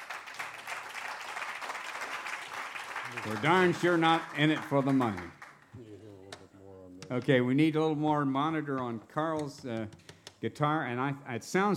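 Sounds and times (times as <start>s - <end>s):
audience applause at a live music show: 0.0s - 5.8s
speech: 3.1s - 5.4s, 7.1s - 11.7s.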